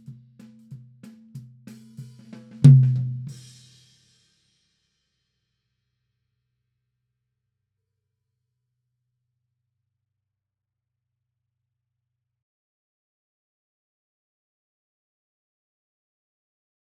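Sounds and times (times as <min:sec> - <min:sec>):
tom drums: 0:00.0 - 0:03.8.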